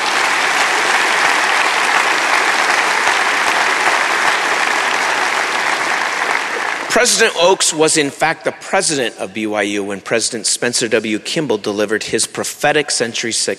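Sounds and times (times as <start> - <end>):
audience applause: 0.0 - 8.0
speech: 6.9 - 13.5.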